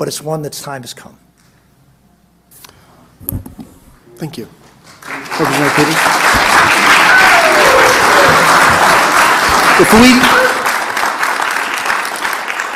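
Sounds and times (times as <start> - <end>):
speech: 0.0 - 1.3, 4.2 - 4.6, 5.4 - 6.4, 9.8 - 10.5
audience applause: 4.9 - 12.7.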